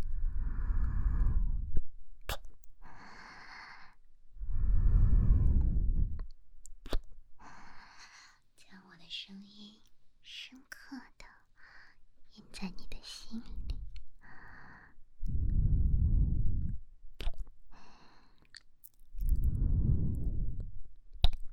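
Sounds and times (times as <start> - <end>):
faint whispery sounds: 0.0 - 21.5
deep breaths: 0.1 - 1.8, 2.8 - 6.2, 11.6 - 12.0, 13.6 - 16.8, 17.7 - 18.5, 19.3 - 20.6.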